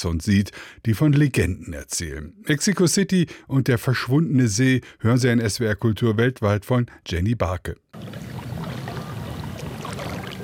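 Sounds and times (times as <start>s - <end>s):
speech: 0.0s - 8.4s
kayak paddle dipping into water: 8.0s - 10.4s.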